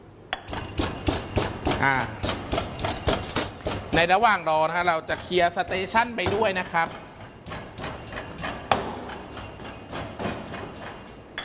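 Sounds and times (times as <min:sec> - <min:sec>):
pestle pounding garlic into Thai curry paste in a mortar: 0:00.4 - 0:11.4
speech: 0:01.8 - 0:02.2, 0:03.9 - 0:07.0.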